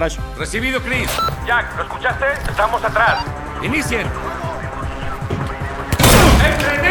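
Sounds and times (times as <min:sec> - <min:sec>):
speech: 0:00.0 - 0:04.3
gunfire during an armed raid: 0:05.9 - 0:06.8.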